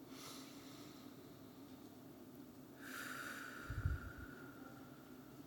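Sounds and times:
group at a church service taking deep breaths: 0:00.1 - 0:01.5, 0:02.8 - 0:05.3.

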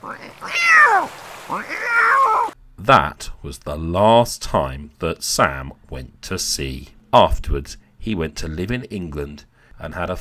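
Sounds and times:
angry cat meowing: 0:00.0 - 0:02.6
speech: 0:02.9 - 0:10.2.

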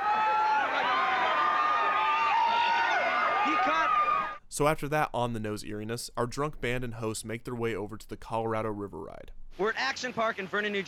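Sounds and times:
people screaming at water park: 0:00.0 - 0:04.4
speech: 0:03.4 - 0:10.8.

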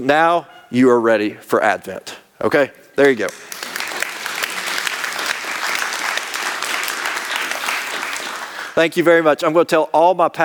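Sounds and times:
speech: 0:00.0 - 0:03.5, 0:08.8 - 0:10.4
audience clapping: 0:03.0 - 0:08.8.

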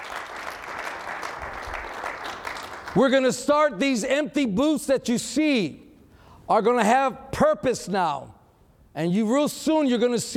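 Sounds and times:
church congregation applause: 0:00.0 - 0:03.3
speech: 0:02.9 - 0:05.8, 0:06.5 - 0:08.4, 0:09.0 - 0:10.3.

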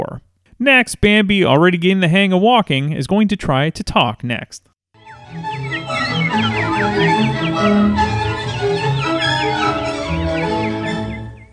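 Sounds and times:
speech: 0:00.0 - 0:04.7, 0:06.4 - 0:08.1
orchestral music with sustained lower notes: 0:05.0 - 0:11.5
birds chirping in film clip: 0:05.1 - 0:11.5.

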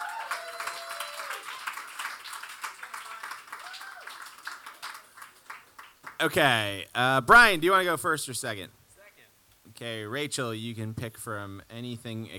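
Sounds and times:
audience applause welcoming two contestants onstage: 0:00.0 - 0:06.3
speech: 0:06.2 - 0:08.8, 0:09.8 - 0:12.3.

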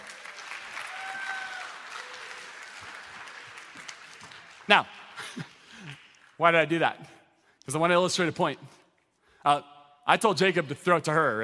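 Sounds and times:
audience applause during a talk: 0:00.0 - 0:06.3
speech: 0:04.7 - 0:05.5, 0:06.4 - 0:08.8, 0:09.4 - 0:11.4.

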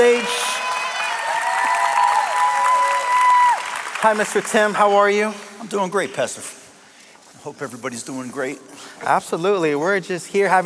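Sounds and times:
church congregation clapping and cheering to welcome a guest: 0:00.0 - 0:05.6
speech: 0:04.0 - 0:06.6, 0:07.4 - 0:10.6.

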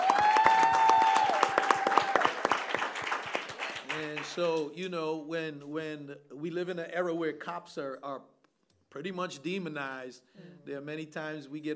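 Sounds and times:
audience applause: 0:00.0 - 0:04.6
speech: 0:04.4 - 0:11.7.

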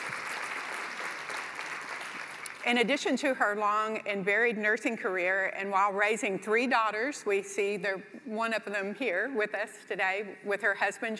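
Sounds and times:
audience applause: 0:00.0 - 0:02.6
speech: 0:02.6 - 0:11.1.

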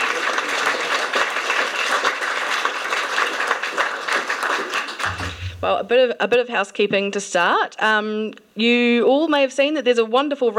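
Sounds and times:
round of applause: 0:00.0 - 0:05.6
speech: 0:05.6 - 0:10.5.

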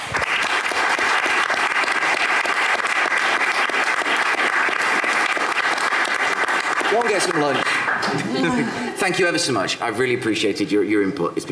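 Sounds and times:
applause: 0:00.0 - 0:08.6
speech: 0:07.1 - 0:11.5
laughter: 0:08.0 - 0:09.4.

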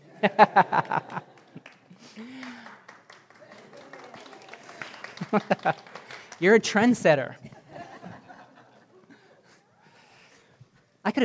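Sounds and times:
laughter: 0:00.0 - 0:02.6, 0:03.4 - 0:06.2, 0:07.4 - 0:09.7
speech: 0:00.2 - 0:01.3, 0:05.3 - 0:05.8, 0:06.4 - 0:07.5
one person clapping: 0:00.7 - 0:06.4.

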